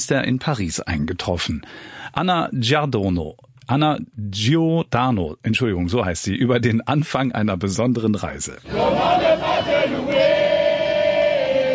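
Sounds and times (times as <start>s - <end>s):
speech: 0.0s - 10.2s
welcoming committee of children and teenagers singing at Paris-Orly airport: 8.7s - 11.7s.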